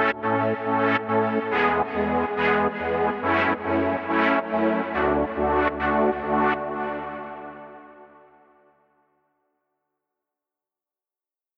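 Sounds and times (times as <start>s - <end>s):
synth pads: 0.0s - 8.2s.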